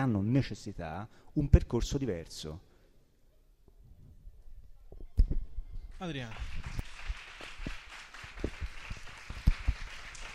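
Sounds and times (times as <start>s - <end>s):
speech: 0.0s - 2.7s, 6.0s - 6.6s
audience applause with scattered hand claps: 6.0s - 10.3s.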